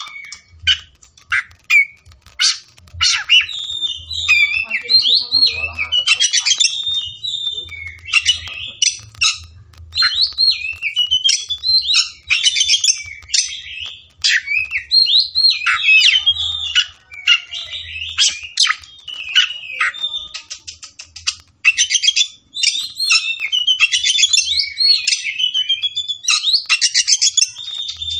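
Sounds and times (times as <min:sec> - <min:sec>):
Oriental magpie-robin singing: 0:00.0 - 0:28.1
low background rumble: 0:00.1 - 0:18.1.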